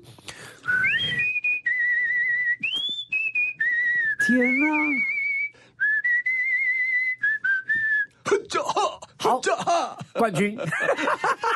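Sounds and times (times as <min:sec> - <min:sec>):
high-pitched human whistling: 0:00.7 - 0:08.2
speech: 0:04.3 - 0:05.1, 0:09.7 - 0:11.5
laughter: 0:08.6 - 0:11.5.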